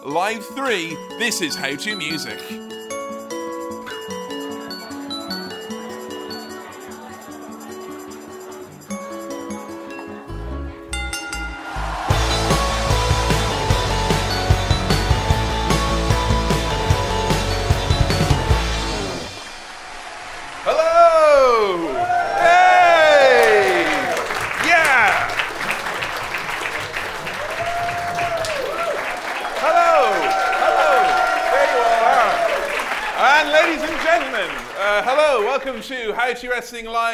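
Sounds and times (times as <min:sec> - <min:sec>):
speech: 0:00.0 - 0:02.8, 0:35.8 - 0:37.1
short burst of loud music: 0:11.5 - 0:19.7
theater crowd whoops and cheers: 0:11.6 - 0:13.2, 0:20.0 - 0:34.2
theater crowd applauding: 0:11.7 - 0:35.8.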